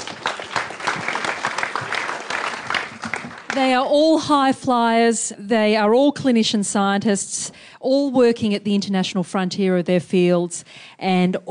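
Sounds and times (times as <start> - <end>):
audience applause welcoming panel speakers at a university reunion event: 0.0 - 3.8
speech: 3.6 - 11.5.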